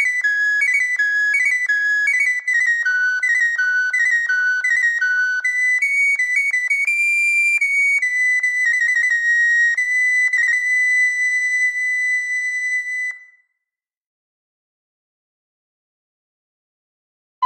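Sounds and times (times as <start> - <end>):
virtual English recorder flute VST plugin: 0.0 - 13.7.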